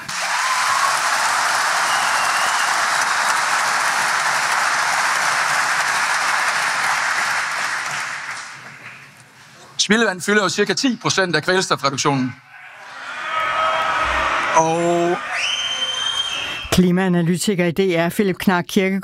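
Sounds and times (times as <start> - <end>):
audience cheering: 0.1 - 8.7, 12.5 - 16.7
applause: 0.1 - 9.1
speech: 9.9 - 12.5, 14.6 - 15.5, 16.8 - 19.0.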